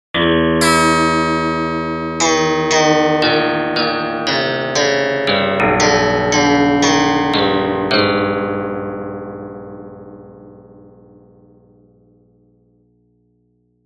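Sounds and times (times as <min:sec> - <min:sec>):
instrument string: 0:00.3 - 0:08.7.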